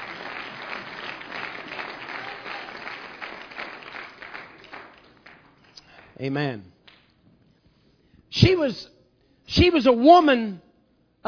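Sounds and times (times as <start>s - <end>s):
audience clapping hands: 0.0s - 6.2s
speech: 6.2s - 6.8s, 8.4s - 10.6s.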